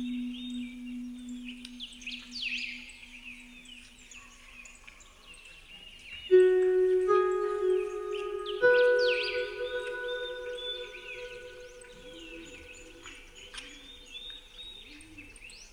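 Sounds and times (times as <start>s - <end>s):
relaxing spa music on Celtic harp: 0.0s - 3.4s, 6.3s - 13.5s
birds: 0.0s - 15.7s.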